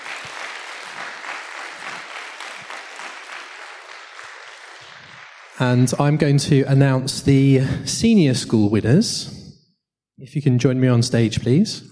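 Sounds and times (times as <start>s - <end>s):
audience applause: 0.0s - 5.6s
speech: 5.6s - 9.4s, 10.2s - 11.9s.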